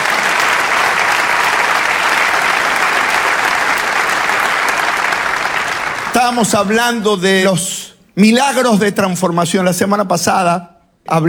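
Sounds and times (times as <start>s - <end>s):
audience applause: 0.0s - 7.2s
speech: 6.2s - 11.2s.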